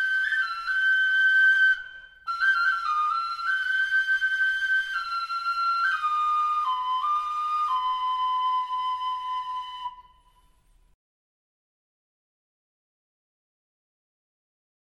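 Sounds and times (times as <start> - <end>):
flauto osso bone flute: 0.0 - 10.8.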